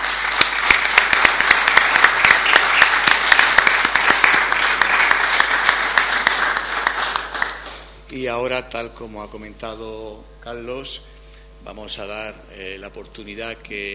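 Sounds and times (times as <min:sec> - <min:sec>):
audience applause: 0:00.0 - 0:08.0
speech: 0:08.2 - 0:13.9.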